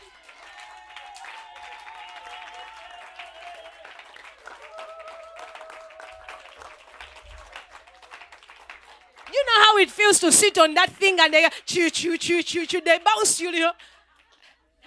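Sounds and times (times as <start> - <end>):
audience clapping: 0.0 - 10.0, 13.6 - 14.8
speech: 9.3 - 14.0.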